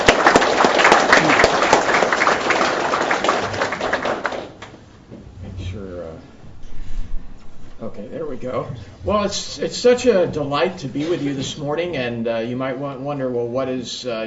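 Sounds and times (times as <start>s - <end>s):
audience applause welcoming a guest speaker at a church service: 0.0s - 4.8s
speech: 8.4s - 14.2s.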